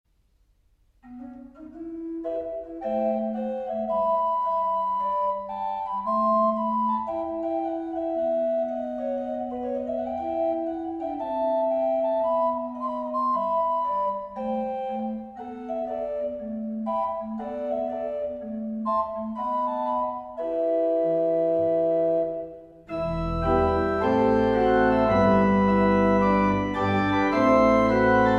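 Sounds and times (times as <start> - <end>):
organ: 1.0 - 28.3.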